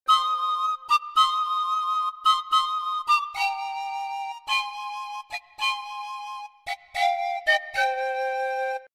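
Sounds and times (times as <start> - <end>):
Andean panpipe melody: 0.1 - 8.9.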